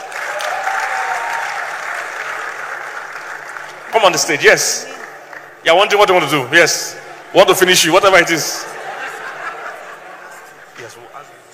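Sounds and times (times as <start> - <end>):
audience clapping: 0.0 - 6.4
speech: 3.9 - 4.9, 5.6 - 8.7
laughter: 8.1 - 11.2.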